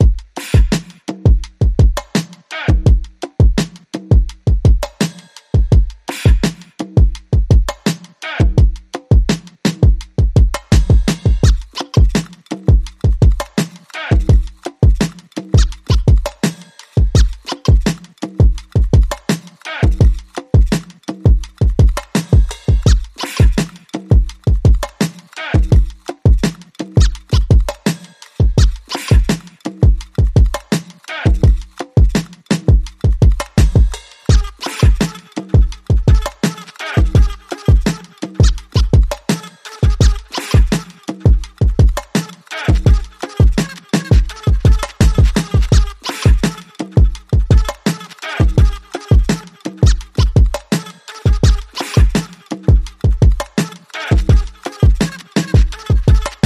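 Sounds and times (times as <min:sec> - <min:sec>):
drums: 0:00.0 - 0:56.4
vocals: 0:02.3 - 0:03.6, 0:08.0 - 0:09.4, 0:10.7 - 0:18.1, 0:18.8 - 0:24.1, 0:24.8 - 0:26.2, 0:28.2 - 0:32.3, 0:33.4 - 0:50.3, 0:51.0 - 0:56.4.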